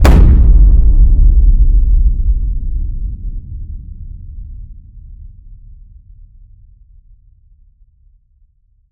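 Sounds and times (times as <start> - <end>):
designed cinematic boom hits: 0.0 - 4.9.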